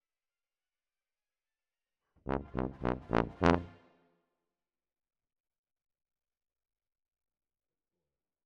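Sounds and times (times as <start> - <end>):
tuba: 2.3 - 4.0.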